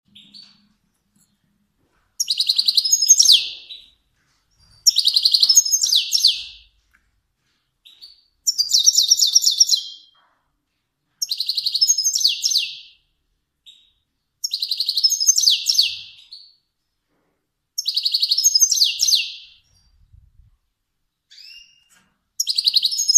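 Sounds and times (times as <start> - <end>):
finch song twittering trill: 2.2 - 4.0, 4.6 - 6.7, 7.9 - 10.2, 11.2 - 13.0, 13.7 - 16.6, 17.8 - 20.0, 21.3 - 23.1.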